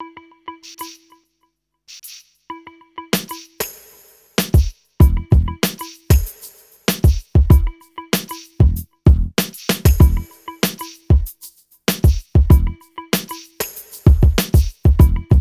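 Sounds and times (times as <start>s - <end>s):
hip hop and R&B mix: 3.2s - 15.3s.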